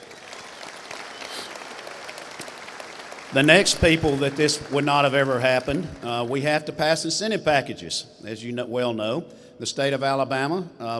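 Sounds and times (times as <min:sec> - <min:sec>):
audience applause: 0:00.0 - 0:06.5
speech: 0:03.3 - 0:10.9.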